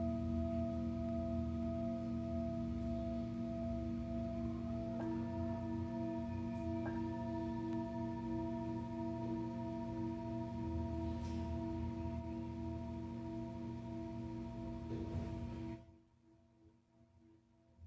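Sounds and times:
singing bowl ringing with a sustained drone: 0.0 - 15.9.

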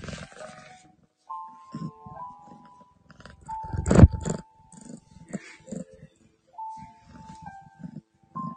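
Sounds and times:
cat purring: 0.0 - 8.5.

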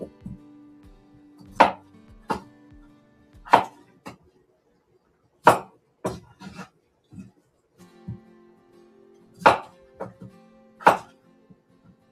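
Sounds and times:
knife chopping a peeled onion for a hot pot: 1.6 - 2.5, 3.5 - 3.8, 5.5 - 6.7, 9.4 - 10.2, 10.8 - 11.1.

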